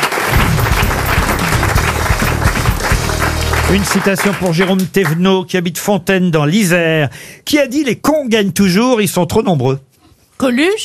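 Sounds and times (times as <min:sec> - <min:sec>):
audience applause: 0:00.0 - 0:05.2
speech: 0:03.7 - 0:10.8.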